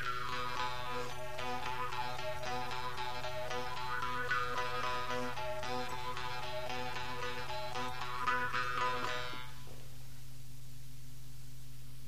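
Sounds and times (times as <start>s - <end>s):
vargan jew's harp: 0.0s - 9.6s.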